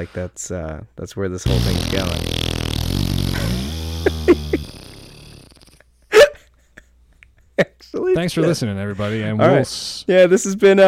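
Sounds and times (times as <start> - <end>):
speech: 0.0 - 4.7, 8.2 - 10.8
low buzzy raspberry blown with the lips: 1.5 - 5.9
breathy burst: 1.5 - 6.4.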